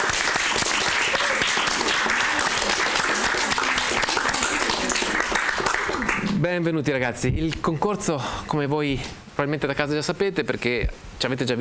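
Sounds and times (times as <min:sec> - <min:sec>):
class applause: 0:00.0 - 0:06.4
speech: 0:06.6 - 0:11.6.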